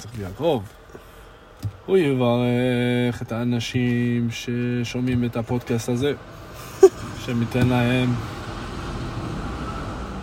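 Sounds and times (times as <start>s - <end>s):
speech: 0.0s - 0.8s, 1.9s - 8.4s
big truck passing by: 6.3s - 10.2s.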